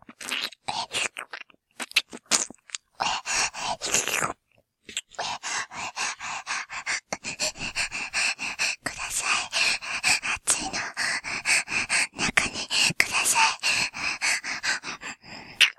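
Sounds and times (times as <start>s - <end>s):
ear licking sounds: 0.1s - 15.7s
person whispering: 3.0s - 4.1s, 5.0s - 15.7s.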